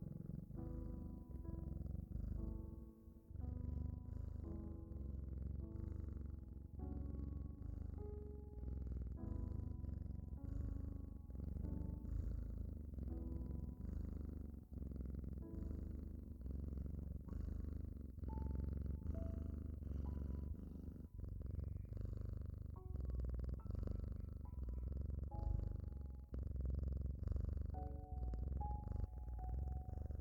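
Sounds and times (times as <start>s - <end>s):
calm music with soft sustained notes: 0.0s - 30.2s
cat purring: 0.0s - 30.2s.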